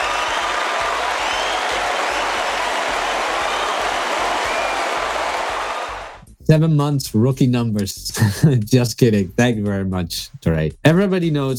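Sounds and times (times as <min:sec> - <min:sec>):
applause sound effect: 0:00.0 - 0:06.2
speech: 0:06.5 - 0:11.5.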